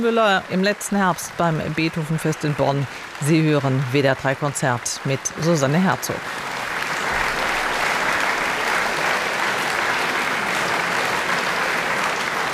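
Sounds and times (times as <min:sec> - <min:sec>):
speech: 0:00.0 - 0:06.5
enthusiastic applause in the small Beethoven-Halle in Bonn-Muffendorf: 0:00.0 - 0:12.5.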